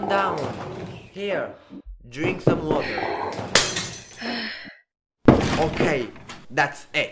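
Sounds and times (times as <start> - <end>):
speech: 0.1 - 3.6, 5.6 - 7.1
mirror glass shattering from a punch: 3.5 - 4.2.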